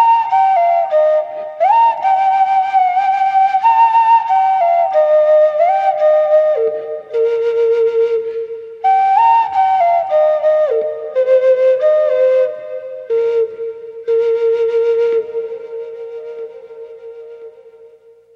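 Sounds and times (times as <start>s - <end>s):
Native American flute playing: 0.0s - 18.3s.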